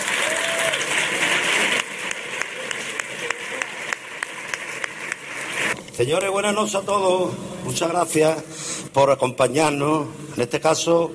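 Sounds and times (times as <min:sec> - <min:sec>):
audience applause: 0:00.0 - 0:05.7
speech: 0:06.0 - 0:11.1.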